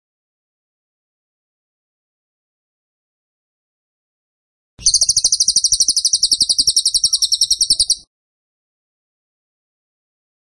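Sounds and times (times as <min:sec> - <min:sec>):
tembakan bird pulsed trill: 0:04.8 - 0:08.1.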